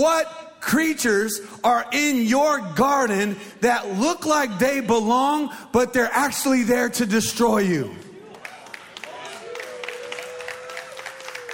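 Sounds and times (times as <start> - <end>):
speech: 0.0 - 8.1
13 people clapping: 8.1 - 11.5.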